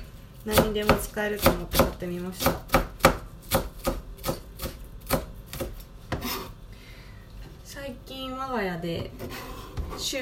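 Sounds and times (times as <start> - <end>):
speech: 0.4 - 2.7, 8.5 - 9.4, 10.0 - 10.2
knife chopping napa cabbage on a cutting board: 0.4 - 6.5.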